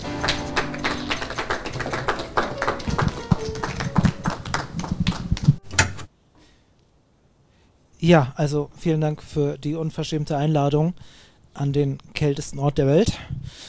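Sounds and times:
audience applause: 0.0 - 5.6
speech: 8.0 - 13.6.

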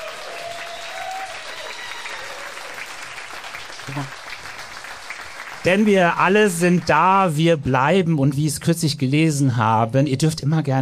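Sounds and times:
live audience applause: 0.0 - 7.3
speech: 3.9 - 4.2, 5.6 - 10.8.

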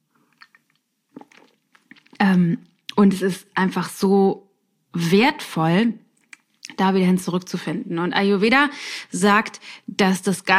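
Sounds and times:
person taking a quick sip of a drink: 0.2 - 2.2
speech: 2.3 - 6.0, 6.7 - 10.5.

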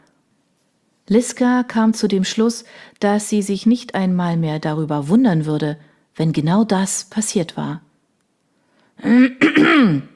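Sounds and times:
speech: 1.1 - 7.9, 9.0 - 10.1
loud deliberate throat clearing: 9.0 - 10.1.

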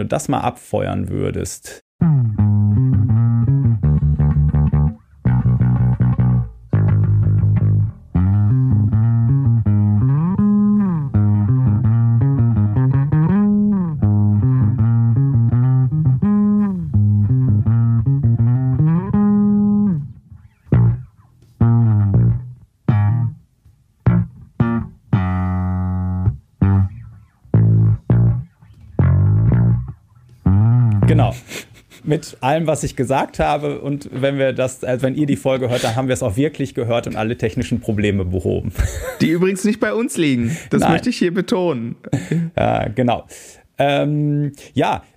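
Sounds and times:
speech: 0.0 - 2.4, 32.2 - 45.1
isolated melodic bass guitar with high slides: 2.0 - 31.5
laughter: 35.7 - 36.0, 38.7 - 39.5, 42.0 - 42.6.

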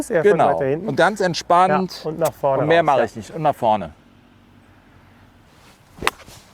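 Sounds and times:
speech: 0.0 - 4.0
golf shot with a 7 iron swung off the back foot: 5.5 - 6.5.

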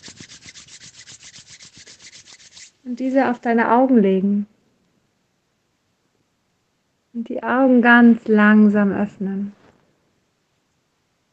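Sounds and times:
hands rubbing together at the close of a guided relaxation: 0.0 - 3.3
speech: 2.8 - 4.5, 7.3 - 9.6.

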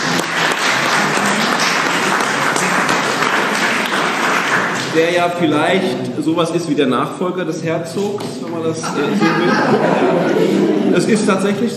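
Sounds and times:
audience applause: 0.0 - 5.3
speech: 5.0 - 11.7
laughter: 8.8 - 11.6.

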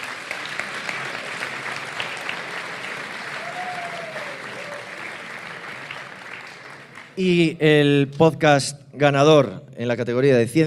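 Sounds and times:
audience applause: 0.0 - 7.4
speech: 7.2 - 10.6.

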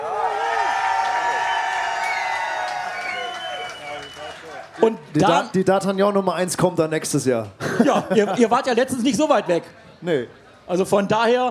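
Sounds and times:
cheering and whooping: 0.0 - 4.6
scattered clapping: 1.7 - 5.0
speech: 4.8 - 11.4
laughter: 7.6 - 9.2.

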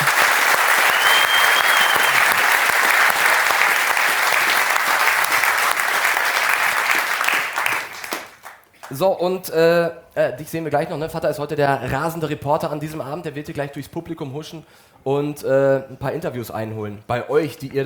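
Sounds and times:
audience applause: 0.0 - 9.0
speech: 9.0 - 17.8.

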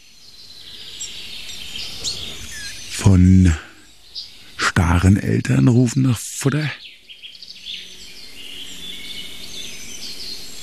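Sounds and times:
blackbird singing: 0.0 - 10.6
steady soft hiss of outdoor ambience: 0.0 - 10.6
speech: 3.0 - 3.7, 5.0 - 6.8.

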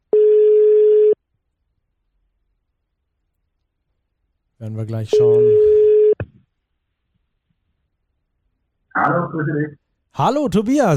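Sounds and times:
telephone ringback tone on a phone line: 0.1 - 1.2, 5.2 - 6.2
speech: 4.6 - 5.8, 9.1 - 10.9.

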